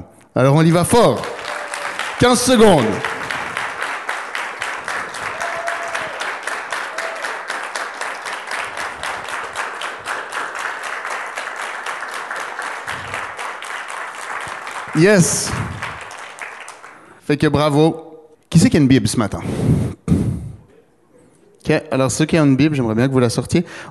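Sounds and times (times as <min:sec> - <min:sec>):
speech: 0:00.4 - 0:01.4, 0:02.2 - 0:03.1, 0:15.0 - 0:15.6, 0:17.3 - 0:18.0, 0:18.6 - 0:19.9, 0:21.7 - 0:23.8
audience applause at a church service: 0:01.0 - 0:17.1.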